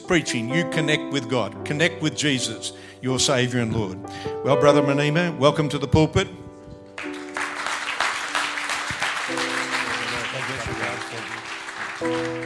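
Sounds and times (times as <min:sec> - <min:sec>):
speech: 0:00.1 - 0:06.4
crowd applause: 0:07.0 - 0:12.4
sustained organ-like chord: 0:07.0 - 0:12.4.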